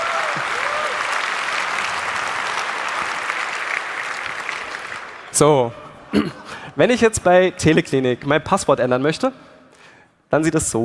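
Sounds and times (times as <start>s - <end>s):
audience applause: 0.0s - 5.4s
speech: 5.4s - 9.5s, 10.3s - 10.8s.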